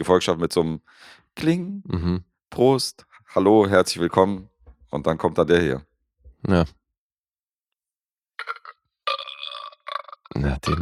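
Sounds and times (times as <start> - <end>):
speech: 0.0 - 6.8, 10.3 - 10.8
burp sound effect: 8.4 - 10.8.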